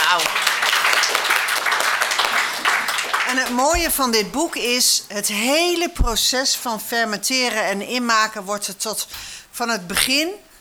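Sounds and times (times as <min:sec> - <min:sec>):
audience applause: 0:00.0 - 0:04.2
speech: 0:00.1 - 0:00.5, 0:03.4 - 0:10.5.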